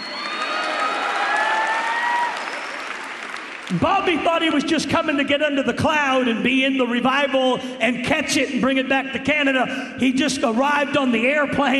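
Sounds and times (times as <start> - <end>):
crowd shouting and whooping: 0.0 - 3.8
crowd clapping: 0.0 - 4.3
speech: 3.7 - 11.7.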